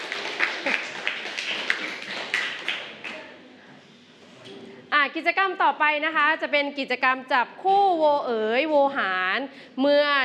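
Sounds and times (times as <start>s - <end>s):
scattered classroom applause from students: 0.0s - 3.4s
speech: 5.0s - 10.2s.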